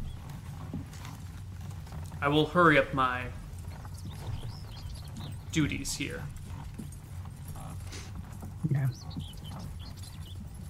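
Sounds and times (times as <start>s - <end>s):
horse hooves clip-clopping: 0.0s - 10.6s
speech: 2.2s - 3.4s, 5.5s - 6.4s, 8.7s - 9.3s.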